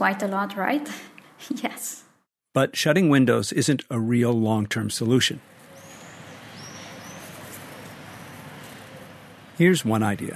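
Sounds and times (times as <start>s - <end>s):
speech: 0.0s - 5.6s, 9.6s - 10.3s
birds singing on a quiet downtown street: 5.4s - 10.3s.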